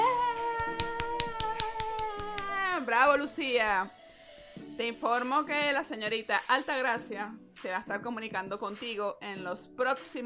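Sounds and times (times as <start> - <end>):
applause: 0.7 - 2.6
speech: 2.9 - 4.0, 4.8 - 10.2.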